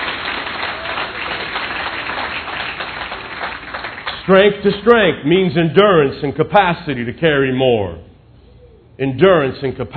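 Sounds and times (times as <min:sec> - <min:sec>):
audience clapping: 0:00.0 - 0:04.4
speech: 0:04.3 - 0:08.1, 0:09.0 - 0:09.9.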